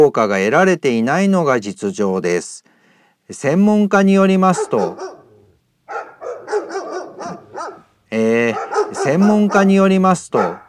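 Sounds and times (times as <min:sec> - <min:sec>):
speech: 0:00.0 - 0:02.7, 0:03.3 - 0:05.2, 0:08.1 - 0:10.6
dog barking and yelping outside: 0:04.4 - 0:10.6.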